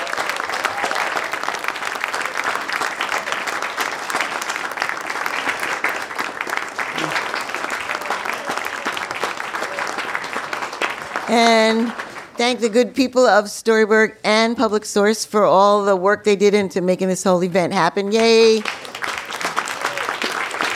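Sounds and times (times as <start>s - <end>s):
audience applause: 0.0s - 12.4s, 18.5s - 20.7s
speech: 11.3s - 18.7s.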